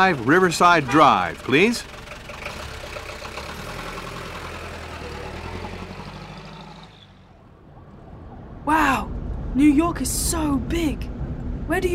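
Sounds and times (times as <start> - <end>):
speech: 0.0 - 2.0, 9.6 - 11.1, 11.7 - 11.9
taxi cab engine idling: 0.0 - 7.7.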